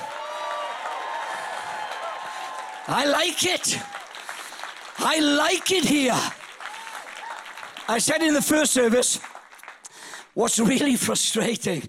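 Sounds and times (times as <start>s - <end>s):
audience cheering: 0.0s - 9.2s
audience clapping: 0.0s - 11.2s
speech: 2.9s - 4.0s, 5.0s - 6.4s, 7.9s - 9.3s, 10.4s - 11.8s.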